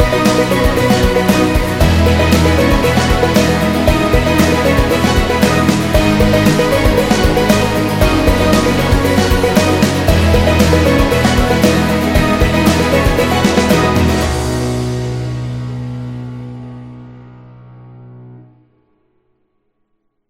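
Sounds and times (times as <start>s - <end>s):
happy indie rock music with strings: 0.0s - 14.8s.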